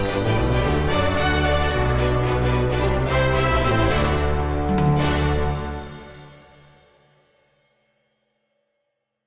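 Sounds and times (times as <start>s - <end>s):
instrumental orchestral remix music: 0.0s - 7.0s.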